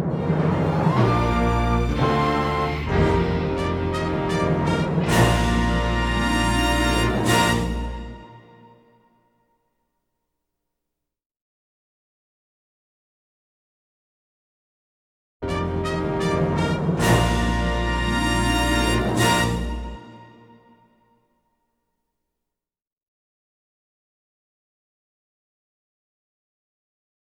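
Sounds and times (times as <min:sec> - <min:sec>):
instrumental fanfare: 0:00.1 - 0:08.7, 0:15.4 - 0:20.8.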